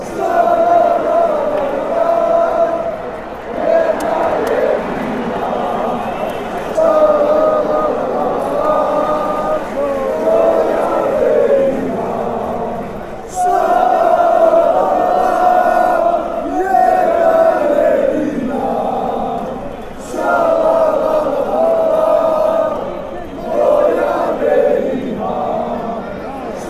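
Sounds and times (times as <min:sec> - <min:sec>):
fans chanting shalalalala: 0:00.0 - 0:26.6.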